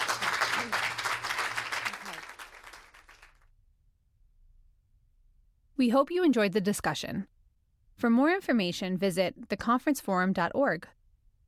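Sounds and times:
crowd round of applause: 0:00.0 - 0:03.4
speech: 0:05.8 - 0:07.4, 0:08.0 - 0:11.0.

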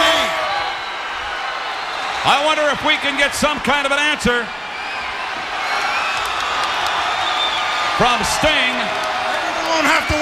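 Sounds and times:
wrestling arena crowd cheering: 0:00.0 - 0:10.1
shrill whistles or shouts: 0:00.4 - 0:02.0, 0:04.6 - 0:08.0
speech: 0:02.2 - 0:04.6, 0:08.0 - 0:09.0, 0:09.7 - 0:10.1.

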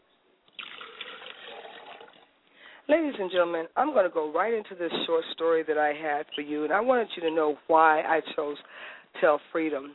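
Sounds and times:
liquid poured as a libation during a spoken ritual: 0:00.5 - 0:02.3
speech: 0:02.9 - 0:09.9.

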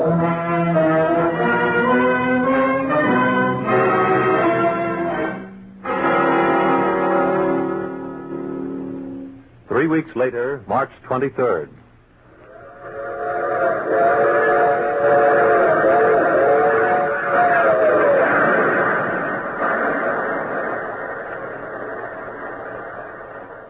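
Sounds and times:
multi-tone train whistle: 0:00.0 - 0:09.3, 0:12.4 - 0:19.1
speech: 0:09.9 - 0:11.8
train running on rails: 0:12.6 - 0:23.6.

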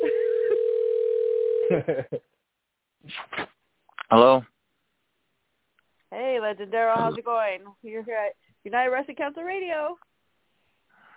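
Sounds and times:
telephone call ringing: 0:00.0 - 0:01.7
speech: 0:01.7 - 0:02.4, 0:04.1 - 0:04.5, 0:06.2 - 0:10.1.

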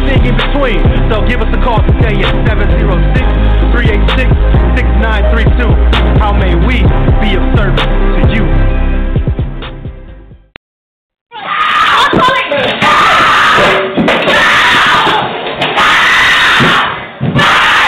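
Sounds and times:
speech: 0:00.2 - 0:08.7
screaming and shouting from a recorded domestic abuse attack: 0:11.3 - 0:17.8.

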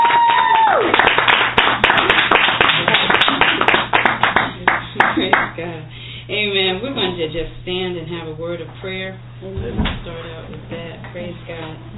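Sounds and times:
audience clapping: 0:00.0 - 0:05.6
speech: 0:07.2 - 0:11.9.

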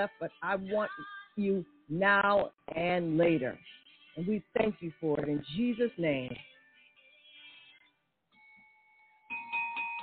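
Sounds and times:
speech: 0:00.0 - 0:06.5
bell ringing: 0:08.4 - 0:10.0.

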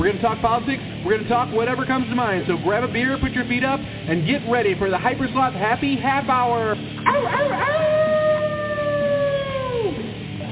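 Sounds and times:
speech: 0:00.0 - 0:07.9
person howling like a wolf with heavy reverb: 0:07.0 - 0:10.2.

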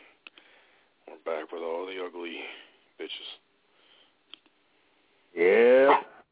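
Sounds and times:
speech: 0:01.4 - 0:03.4
dog barking: 0:05.8 - 0:06.2.

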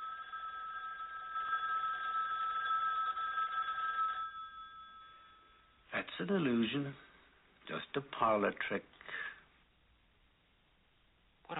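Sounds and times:
telephone ringing: 0:00.0 - 0:05.8
speech: 0:06.2 - 0:07.1, 0:07.7 - 0:09.2.

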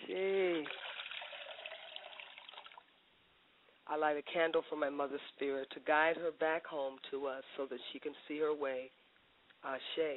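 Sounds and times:
liquid poured as libation, splashing: 0:00.5 - 0:02.9
speech: 0:04.0 - 0:09.0, 0:09.6 - 0:10.1.

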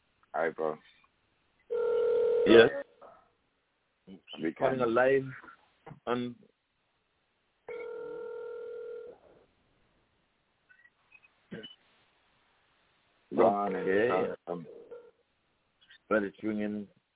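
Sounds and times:
speech: 0:00.4 - 0:01.0, 0:02.4 - 0:02.9, 0:04.1 - 0:06.5, 0:13.4 - 0:14.8, 0:16.1 - 0:17.0
telephone ringing tone: 0:01.7 - 0:02.6, 0:07.7 - 0:09.1.

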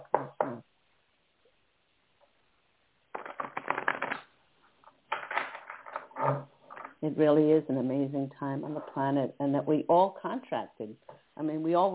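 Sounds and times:
cards being shuffled and laid out for a reading: 0:03.1 - 0:07.0
speech: 0:07.0 - 0:11.9.

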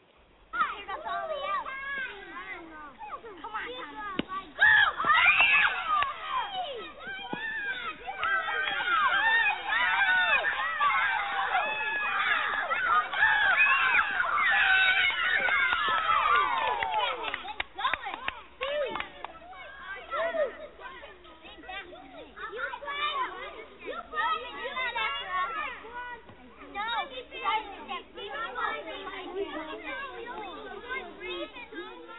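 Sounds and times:
children playing and shouting on a playground: 0:00.5 - 0:32.1.

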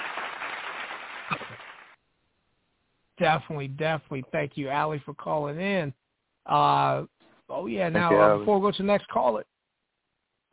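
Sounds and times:
clapping sound effect: 0:00.0 - 0:02.0
speech: 0:01.3 - 0:01.6, 0:03.2 - 0:09.5.

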